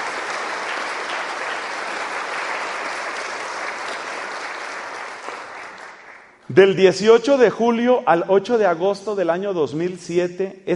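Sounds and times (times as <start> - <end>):
audience applause: 0.0 - 6.4
speech: 6.5 - 10.7.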